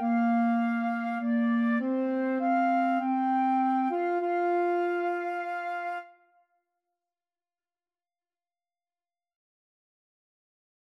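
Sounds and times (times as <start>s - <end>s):
woodwind trio: 0.0s - 6.2s.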